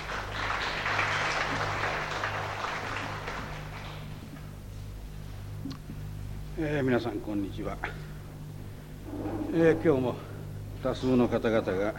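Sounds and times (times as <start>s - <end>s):
audience applause: 0.0s - 4.2s
speech: 6.6s - 8.1s, 9.5s - 11.9s.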